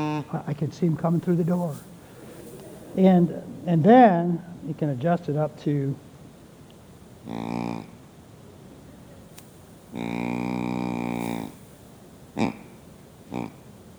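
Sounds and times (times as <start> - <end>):
deer buck grunt call: 0.0 - 5.7, 7.2 - 8.0, 9.7 - 13.8
speech: 0.2 - 2.0, 3.0 - 6.1, 7.2 - 8.0, 9.9 - 10.5.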